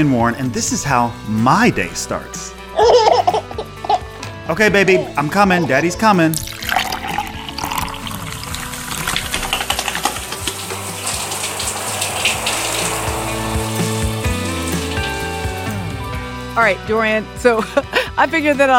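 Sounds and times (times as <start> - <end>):
speech: 0.0 - 3.1, 4.5 - 6.6, 16.6 - 18.7
water running from a tap: 5.9 - 16.7.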